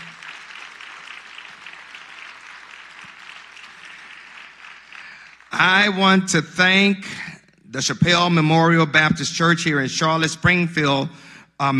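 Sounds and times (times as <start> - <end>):
round of applause: 0.0 - 6.3
speech: 5.6 - 11.7.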